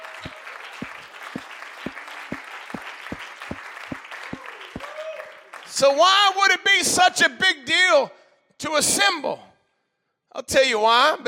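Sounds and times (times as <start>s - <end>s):
audience clapping: 0.0s - 5.8s
speech: 5.8s - 9.5s, 10.4s - 11.2s.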